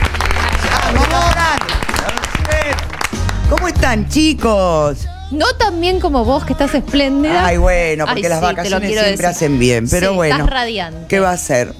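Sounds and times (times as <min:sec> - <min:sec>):
studio applause: 0:00.0 - 0:04.9
speech: 0:03.7 - 0:11.7.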